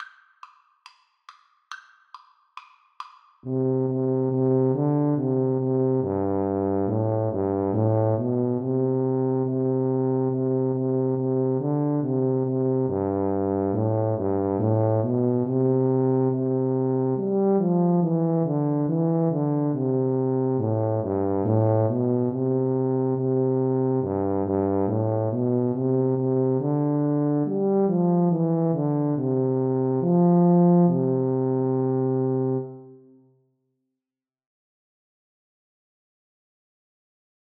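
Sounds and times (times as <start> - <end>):
tuba duet: 3.5 - 33.1.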